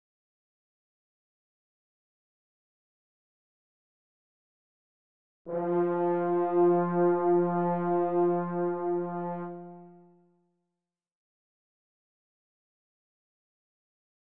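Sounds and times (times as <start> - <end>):
concert F horn playing: 5.5 - 10.1.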